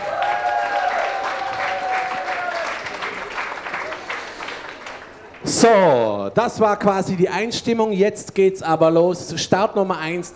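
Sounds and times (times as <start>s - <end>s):
audience applause: 0.0s - 6.1s
person whistling or cheering: 5.5s - 6.1s
speech: 5.5s - 10.3s.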